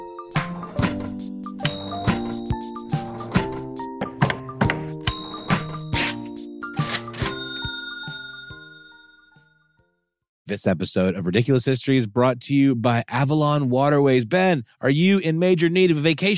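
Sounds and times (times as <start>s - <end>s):
cash register ring: 0.5s - 9.5s
speech: 10.5s - 16.3s.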